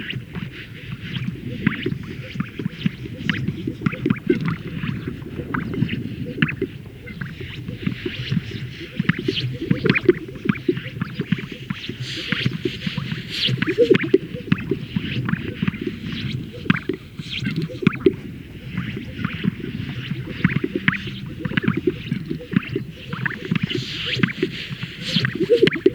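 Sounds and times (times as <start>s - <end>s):
Greater sage-grouse males displaying at a lek, inflating and releasing air sacs: 0.0s - 25.9s.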